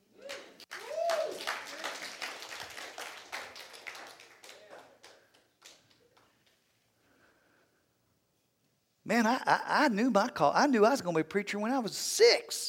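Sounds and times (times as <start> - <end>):
audience clapping: 0.0 - 6.7
person cheering: 0.2 - 2.0
speech: 9.1 - 12.6.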